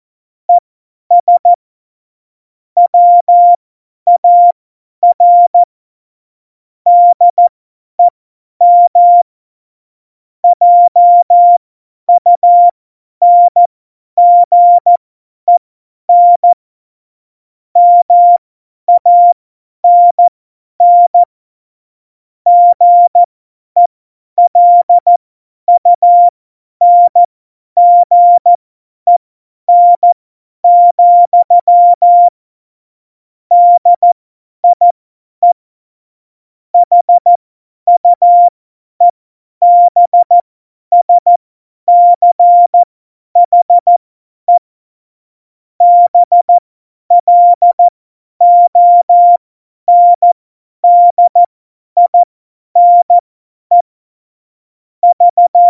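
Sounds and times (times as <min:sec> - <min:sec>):
CW Morse code at tempo 70: 0:01.2 - 0:01.5, 0:02.9 - 0:05.7, 0:06.9 - 0:09.3, 0:10.6 - 0:11.6, 0:12.2 - 0:16.6, 0:17.8 - 0:21.3, 0:22.5 - 0:32.4, 0:33.5 - 0:35.6, 0:36.8 - 0:44.6, 0:45.8 - 0:49.4, 0:50.0 - 0:53.9, 0:55.0 - 0:55.6.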